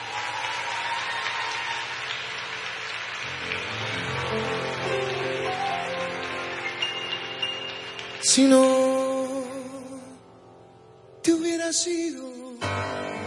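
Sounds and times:
applause: 0.0 - 9.6
speech: 8.3 - 8.8, 11.7 - 13.1.

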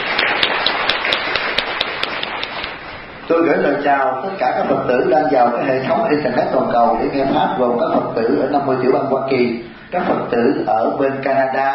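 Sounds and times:
crowd applause welcoming first-time Buddhist visitors in Indio, Southern California: 0.0 - 2.9
speech: 3.3 - 11.7.

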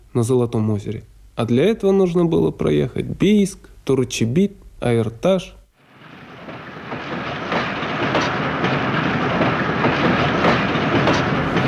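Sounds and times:
speech: 0.2 - 5.6
common-class carriage of a Barnaul–Biysk train rumbling: 5.8 - 11.6
train wheels clacking over rail joints: 5.9 - 11.6.

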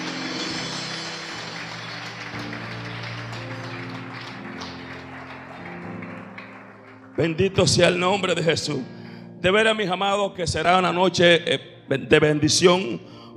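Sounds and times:
audience applause: 0.0 - 7.6
speech: 7.2 - 13.3.

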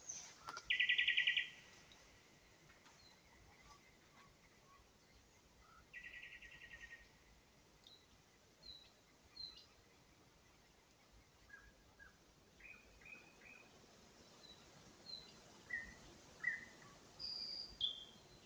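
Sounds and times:
nightingale spring song in Ukraine: 0.0 - 1.6, 15.7 - 18.4.

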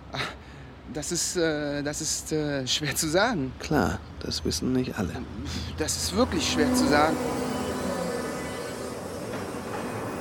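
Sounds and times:
speech: 0.9 - 7.5
train bound for Potsdamer Straße arriving at station: 5.5 - 10.2.

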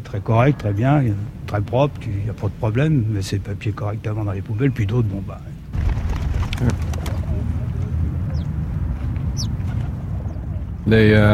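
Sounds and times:
steady low outdoor rumble: 0.0 - 11.3
speech: 0.1 - 5.6, 6.6 - 7.0, 10.9 - 11.3
small birds chirping: 6.6 - 10.8.

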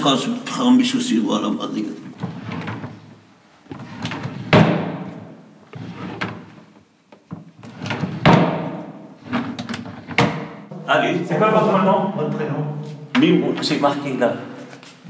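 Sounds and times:
speech: 0.0 - 2.4, 10.9 - 14.5
wooden drawer sliding open and shut: 2.1 - 6.7, 7.3 - 10.6.

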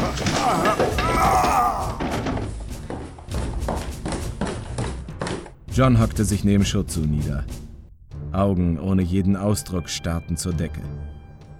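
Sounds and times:
body tumbling down a staircase in an audio drama: 0.2 - 5.6
speech: 5.8 - 7.6, 8.4 - 11.2.

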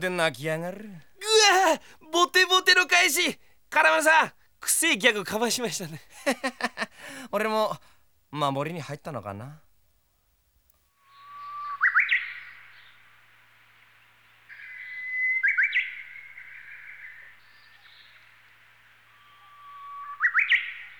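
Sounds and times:
speech: 0.0 - 9.6
laughter: 5.9 - 7.2
Japanese bush warbler singing: 11.0 - 13.0, 14.5 - 20.9.

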